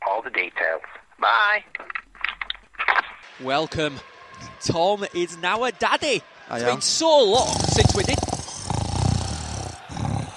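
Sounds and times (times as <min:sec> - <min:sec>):
speech: 0:00.1 - 0:02.0, 0:03.4 - 0:08.4
snoring sound effect: 0:07.3 - 0:10.3.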